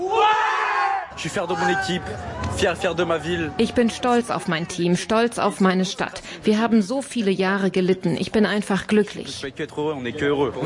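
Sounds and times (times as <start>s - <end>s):
football fans cheering and shouting in street: 0.0s - 5.2s
speech: 1.2s - 10.6s.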